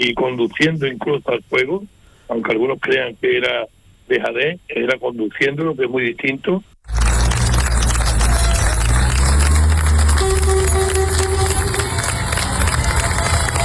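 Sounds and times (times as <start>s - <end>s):
speech: 0.0s - 7.0s
townspeople of Niebla cheering farewell to departing military firefighters: 6.9s - 13.6s.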